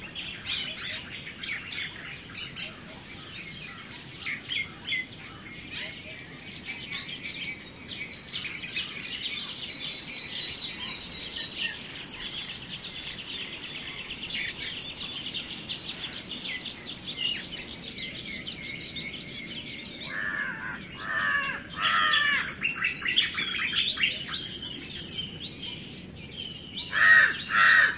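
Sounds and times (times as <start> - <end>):
morning soundscape: 0.0 - 27.9.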